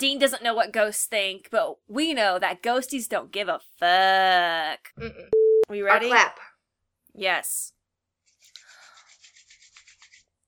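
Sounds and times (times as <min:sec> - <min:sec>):
speech: 0:00.0 - 0:06.5, 0:07.2 - 0:07.8
hands rubbing together over the microphone: 0:08.3 - 0:10.4.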